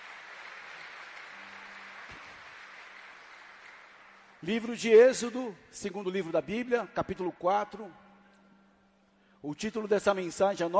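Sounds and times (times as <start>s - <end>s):
audience applause: 0.0s - 4.4s
speech: 4.4s - 8.0s, 9.4s - 10.7s.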